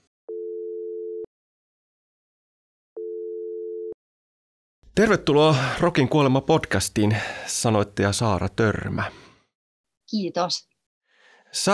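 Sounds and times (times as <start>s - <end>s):
telephone ringing tone: 0.3s - 1.3s, 3.0s - 4.0s
speech: 5.0s - 9.2s, 10.1s - 10.7s, 11.5s - 11.7s.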